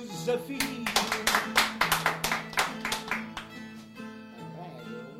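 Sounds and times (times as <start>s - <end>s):
speech: 0.3s - 1.2s
audience clapping: 0.6s - 3.7s.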